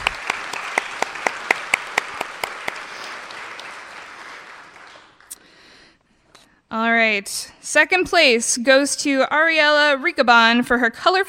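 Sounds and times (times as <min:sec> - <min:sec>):
audience applause: 0:00.0 - 0:05.4
crisp steady clap: 0:00.0 - 0:06.1
speech: 0:07.0 - 0:11.2.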